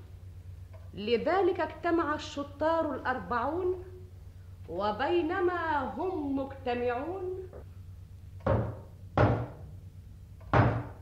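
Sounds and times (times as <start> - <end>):
speech: 1.0 - 3.9, 4.7 - 7.7
knocking on a door: 8.4 - 9.6, 10.5 - 11.0.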